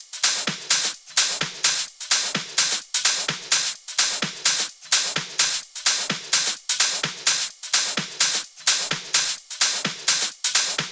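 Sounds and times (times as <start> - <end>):
drum loops: 0.1 - 10.8.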